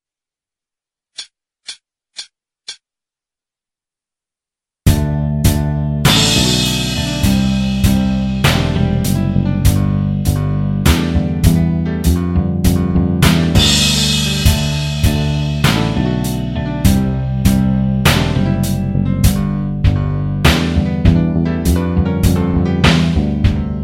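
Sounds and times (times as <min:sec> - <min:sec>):
solo backing track: 0:04.9 - 0:23.8.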